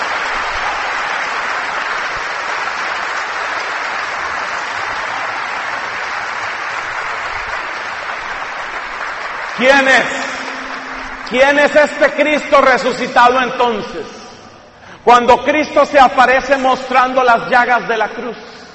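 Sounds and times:
large crowd applause: 0:00.0 - 0:13.0
speech: 0:09.6 - 0:10.2, 0:11.3 - 0:14.2, 0:15.0 - 0:18.6.

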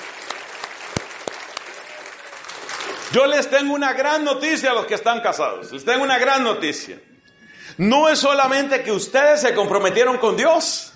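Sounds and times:
applause for married couples: 0:00.0 - 0:03.8
speech: 0:03.1 - 0:07.1, 0:07.8 - 0:10.9.

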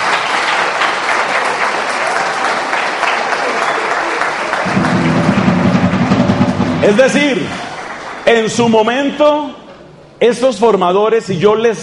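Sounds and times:
audience applause: 0:00.0 - 0:08.7
speech: 0:06.9 - 0:07.6, 0:08.3 - 0:09.6, 0:10.2 - 0:11.8.

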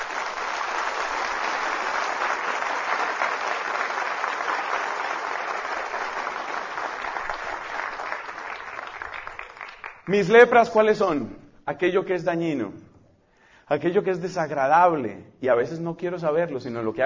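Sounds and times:
audience applause: 0:00.0 - 0:10.1
speech: 0:10.1 - 0:12.8, 0:13.7 - 0:17.0.

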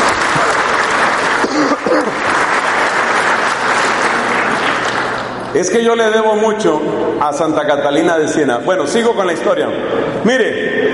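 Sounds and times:
audience applause: 0:00.0 - 0:05.5
speech: 0:05.5 - 0:10.9.

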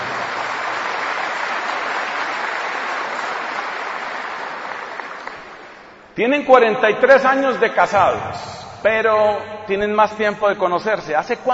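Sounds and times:
audience applause: 0:00.0 - 0:05.9
speech: 0:06.2 - 0:11.5.

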